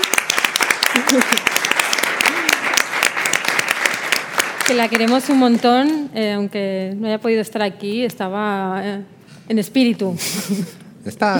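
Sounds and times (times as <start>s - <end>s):
audience applause: 0.0s - 5.9s
speech: 1.1s - 1.5s, 4.7s - 11.3s.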